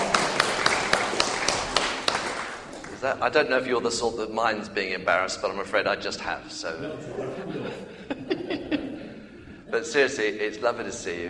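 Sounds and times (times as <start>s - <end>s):
laughter: 0.0s - 1.2s, 6.6s - 10.6s
applause: 0.0s - 3.0s
sharp rhythmic claps: 0.0s - 3.2s
speech: 3.0s - 8.1s, 9.7s - 11.2s.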